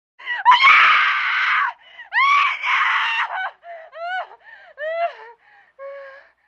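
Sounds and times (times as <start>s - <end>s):
woman screaming: 0.5s - 3.5s.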